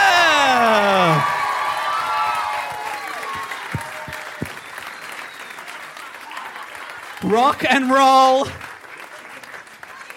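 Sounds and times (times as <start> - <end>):
audience cheering and whooping for comedians taking the stage: 0.0 - 7.4
audience applause for comedians: 0.0 - 10.1
speech: 7.3 - 8.6.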